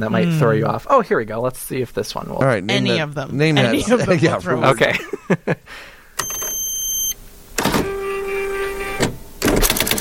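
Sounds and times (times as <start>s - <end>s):
speech: 0.0s - 5.9s
laughter: 3.4s - 5.7s
electric typewriter beeping: 6.2s - 10.0s
electric typewriter typing: 9.0s - 10.0s.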